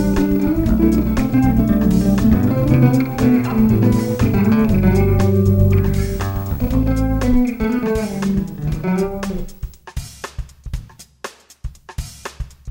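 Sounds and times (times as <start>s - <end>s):
bass guitar popping: 0.0s - 9.7s.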